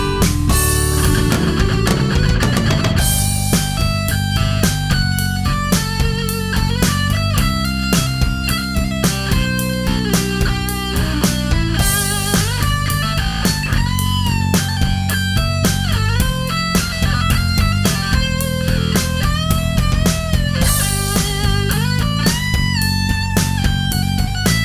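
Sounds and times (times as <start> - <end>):
guitar melody: 0.0 - 24.6.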